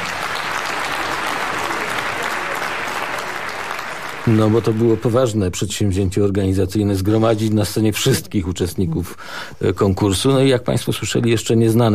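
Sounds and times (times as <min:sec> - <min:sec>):
audience applause as performers leave the stage after an awards concert: 0:00.0 - 0:05.3
speech: 0:04.2 - 0:11.9.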